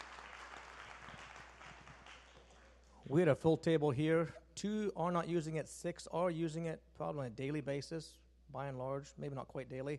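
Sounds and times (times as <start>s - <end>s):
faint audience applause at a group table discussion: 0.0s - 3.0s
speech: 3.0s - 9.9s.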